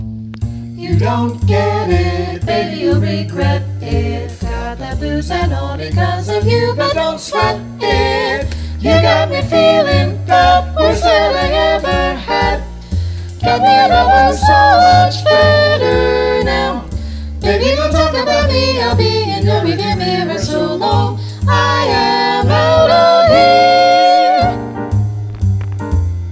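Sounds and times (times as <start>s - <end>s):
vocal jazz etude in B flat: 0.4s - 26.2s.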